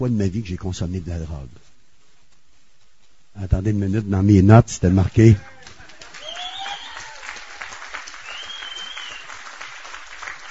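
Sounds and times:
speech: 0.0 - 1.7, 3.4 - 5.5
audience applause: 5.4 - 10.4.

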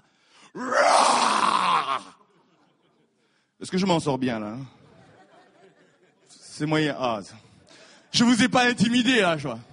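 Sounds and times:
speech: 0.5 - 0.8, 3.6 - 4.8, 6.6 - 7.5, 8.2 - 9.7
person imitating a lion's roar: 0.6 - 2.2
laughter: 2.2 - 3.3, 4.8 - 6.5.

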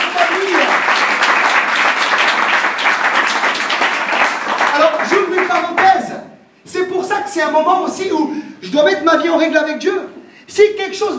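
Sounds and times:
church congregation clapping in praise during a morning service: 0.0 - 6.1
speech: 7.4 - 11.1.

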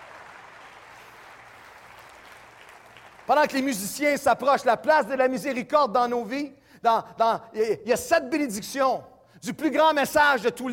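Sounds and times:
church congregation applause during a sermon: 0.0 - 4.4
speech: 3.3 - 10.7.

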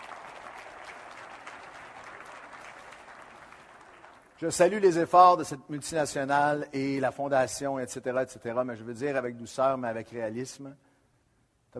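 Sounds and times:
audience applauding: 0.0 - 4.5
speech: 4.4 - 10.8.

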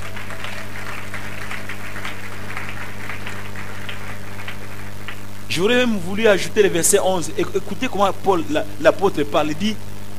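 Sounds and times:
French-speaking church congregation applauding after a Bible reading: 0.0 - 5.8
low steady hum: 0.0 - 10.1
speech: 5.6 - 9.9.

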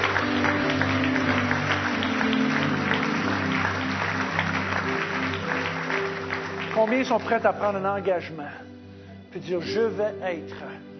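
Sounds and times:
applause: 0.0 - 7.8
speech: 6.9 - 8.7, 9.3 - 10.9.

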